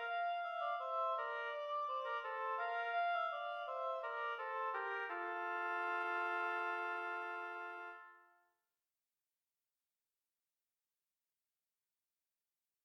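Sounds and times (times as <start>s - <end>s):
oboe duet: 0.0s - 8.4s.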